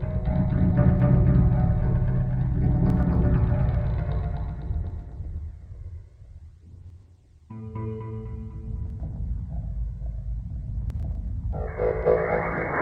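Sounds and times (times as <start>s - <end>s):
B flat Locrian music deconstruction: 0.0s - 5.6s, 7.5s - 10.0s, 11.6s - 12.8s.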